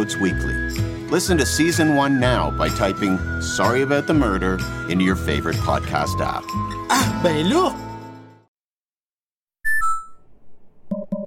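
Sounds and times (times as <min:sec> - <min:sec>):
speech: 0:00.0 - 0:07.8
short buzzy blips: 0:09.6 - 0:10.3
phone call disconnect beep: 0:09.7 - 0:10.3.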